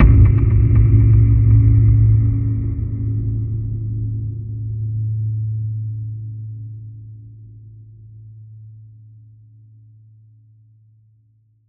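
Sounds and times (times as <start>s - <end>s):
impact boom with flutter: 0.0s - 5.8s.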